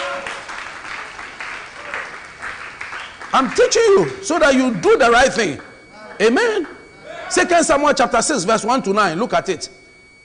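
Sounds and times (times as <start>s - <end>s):
audience clapping: 0.0s - 4.2s
speech: 3.4s - 6.7s, 7.3s - 9.8s.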